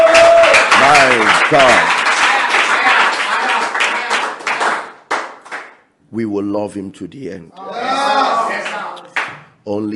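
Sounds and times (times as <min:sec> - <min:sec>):
audience clapping in praise: 0:00.0 - 0:05.9, 0:08.5 - 0:09.5
speech: 0:01.5 - 0:02.0, 0:06.2 - 0:07.8, 0:09.6 - 0:09.9.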